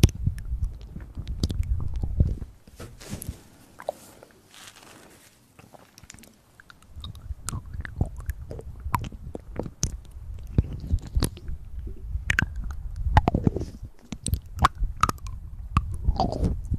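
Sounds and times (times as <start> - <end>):
wet mouth clicks, smacks and chewing-like noises: 0.0 - 2.3, 5.6 - 16.7.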